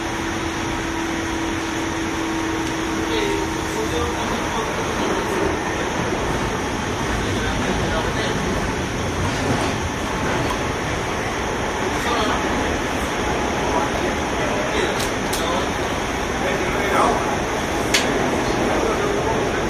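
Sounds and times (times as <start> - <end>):
JR 201 series train rumbling: 0.0 - 19.6
faint voices murmuring: 2.6 - 19.6.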